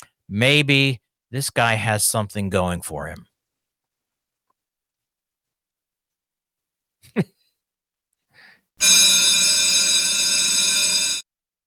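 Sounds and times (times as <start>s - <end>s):
speech: 0.3s - 3.3s, 7.1s - 7.4s, 8.8s - 9.3s
bell ringing: 8.8s - 11.2s.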